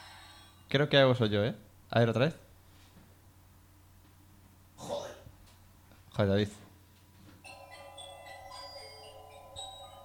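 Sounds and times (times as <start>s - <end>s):
speech: 0.7s - 2.4s, 6.2s - 6.6s
mini fridge anti-theft alarm melody on opening: 7.4s - 10.0s.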